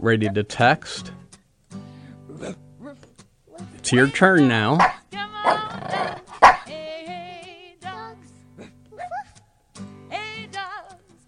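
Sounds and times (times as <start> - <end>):
speech: 0.0 - 1.2, 3.8 - 5.0
hound dog baying and yowling: 4.4 - 6.7
hound dog barking: 4.7 - 6.7.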